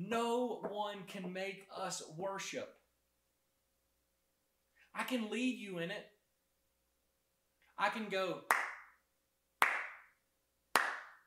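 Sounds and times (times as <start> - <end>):
speech: 0.1 - 2.8, 5.0 - 6.2, 7.8 - 8.7
loud hand claps by one person: 8.4 - 9.0, 9.6 - 11.2.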